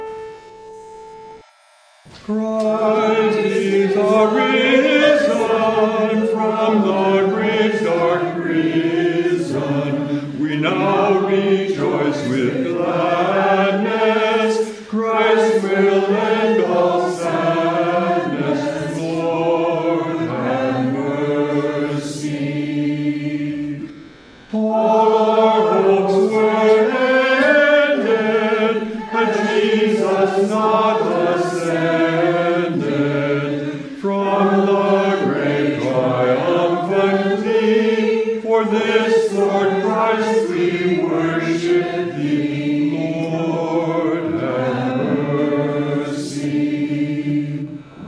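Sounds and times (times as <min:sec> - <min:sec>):
hymn: 0:02.0 - 0:48.0.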